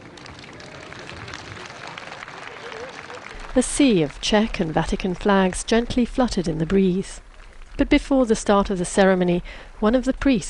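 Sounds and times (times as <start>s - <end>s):
faint crowd murmur: 0.0s - 4.8s
pilgrims clapping as the Pope passes at an open-air gathering: 0.0s - 8.4s
speech: 3.6s - 7.2s, 7.8s - 10.4s.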